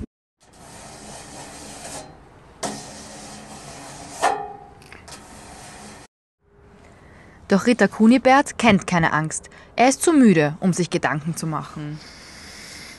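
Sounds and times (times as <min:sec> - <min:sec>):
strange scratching behind a door: 0:00.4 - 0:06.1
speech: 0:07.5 - 0:12.1.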